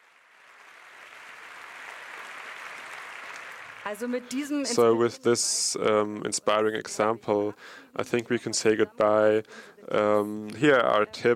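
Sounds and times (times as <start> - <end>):
crowd applauding: 0.0 - 5.0
speech: 3.8 - 11.3.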